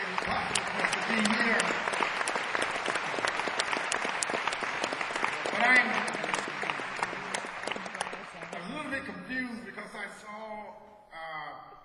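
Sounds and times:
audience applause: 0.0s - 9.2s.

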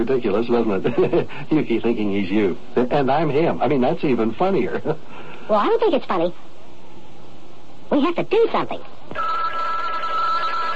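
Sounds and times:
speech: 0.0s - 6.5s, 7.9s - 9.4s
laughter: 0.6s - 1.6s
telephone ringing: 9.1s - 10.7s.

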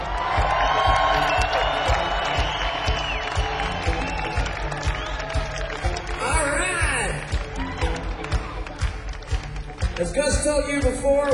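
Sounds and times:
concert crowd cheering and applauding: 0.0s - 11.3s
speech: 10.4s - 11.3s.

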